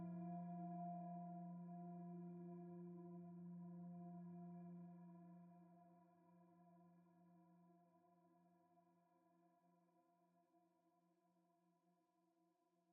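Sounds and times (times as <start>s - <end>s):
piano interlude: 0.0s - 5.1s.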